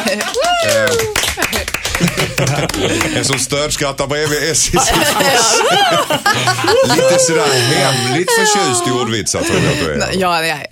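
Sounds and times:
applause: 0:00.0 - 0:03.9
laughter: 0:00.0 - 0:10.3
speech: 0:00.1 - 0:01.0, 0:02.2 - 0:10.6.

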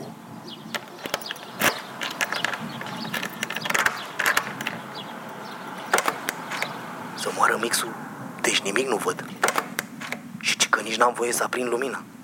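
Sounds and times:
key turning in a door lock: 0:00.7 - 0:06.8, 0:09.2 - 0:10.2
speech: 0:07.4 - 0:09.4, 0:11.0 - 0:12.2.

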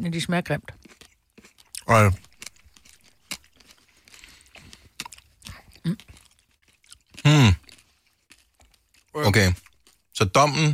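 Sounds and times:
speech: 0:00.0 - 0:01.0, 0:01.9 - 0:02.3, 0:09.2 - 0:09.6, 0:10.2 - 0:10.7
chewing a grape with seeds: 0:00.6 - 0:10.7.

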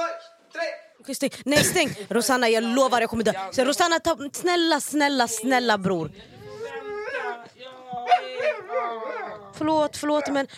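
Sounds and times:
speech: 0:01.0 - 0:06.4, 0:09.6 - 0:10.5
dog howling and whimpering: 0:06.4 - 0:10.4.

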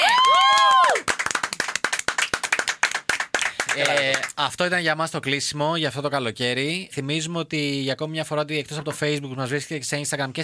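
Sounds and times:
audience clapping: 0:00.0 - 0:04.4
speech: 0:03.8 - 0:10.4.

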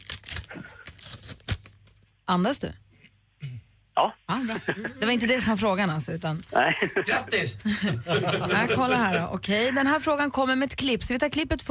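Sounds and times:
envelope being torn open: 0:00.0 - 0:02.2
speech: 0:02.3 - 0:02.8, 0:04.0 - 0:11.6
laughter: 0:04.4 - 0:05.3, 0:06.6 - 0:09.4.

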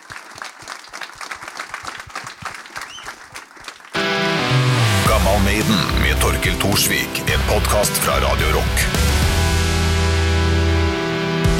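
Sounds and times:
audience applause: 0:00.0 - 0:04.2
music: 0:04.0 - 0:11.5
speech: 0:05.3 - 0:09.2.

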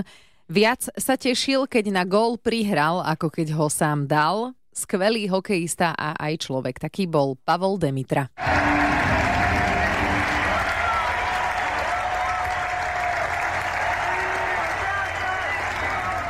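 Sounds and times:
speech: 0:00.0 - 0:09.1
stadium spectators applauding at a national-team ice hockey farewell game: 0:08.4 - 0:16.2.

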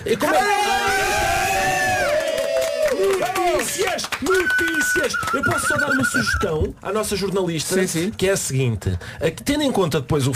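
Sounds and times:
speech: 0:00.0 - 0:00.5, 0:03.7 - 0:10.3
group cheering and whooping: 0:00.1 - 0:06.3
hands clapping: 0:02.0 - 0:07.5.

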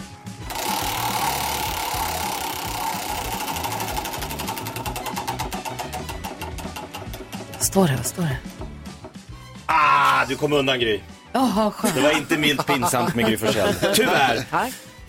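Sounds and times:
prize wheel with labelled notes spinning on a radio show: 0:00.5 - 0:09.3
speech: 0:07.6 - 0:08.5, 0:10.3 - 0:14.8
laughter: 0:11.8 - 0:14.7.

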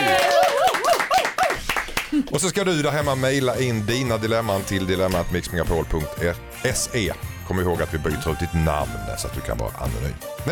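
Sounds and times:
applause: 0:00.0 - 0:02.5
speech: 0:02.3 - 0:10.4.

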